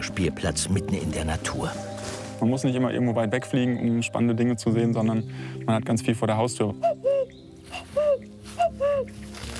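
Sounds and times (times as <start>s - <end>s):
speech: 0.1s - 7.1s
person imitating a cuckoo call: 6.8s - 9.2s.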